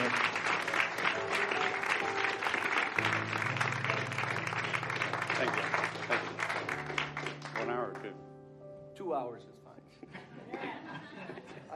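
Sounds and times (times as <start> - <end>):
audience applause welcoming a speaker at a church gathering: 0.0 - 8.0
laughter: 10.0 - 11.7.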